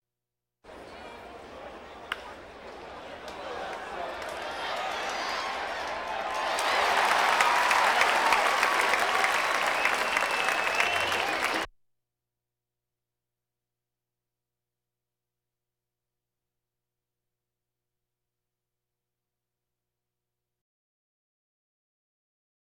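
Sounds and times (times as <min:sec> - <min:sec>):
crowds: 0:00.7 - 0:11.7.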